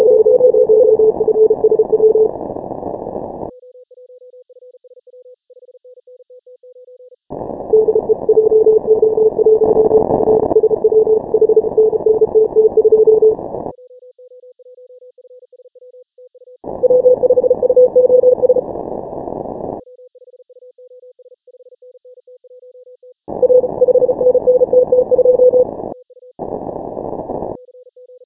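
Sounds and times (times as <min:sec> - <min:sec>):
morse code beeps: 0:00.0 - 0:02.3, 0:07.7 - 0:13.4, 0:16.8 - 0:18.7, 0:23.4 - 0:25.7.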